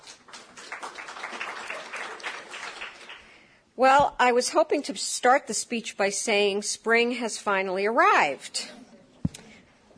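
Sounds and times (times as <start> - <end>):
crowd applause: 0.0 - 3.3
speech: 3.8 - 8.8.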